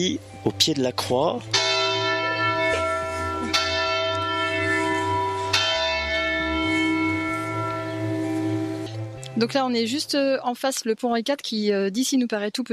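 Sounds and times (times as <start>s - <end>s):
speech: 0.0s - 1.7s, 9.4s - 12.7s
church bells ringing the hour: 1.3s - 10.1s.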